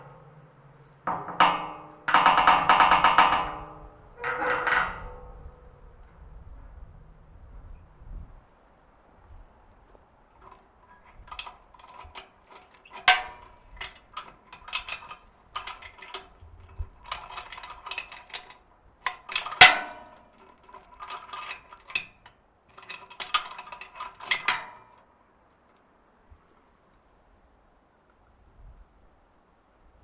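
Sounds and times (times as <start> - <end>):
large metal creaking: 0.0 - 6.0, 10.4 - 25.0.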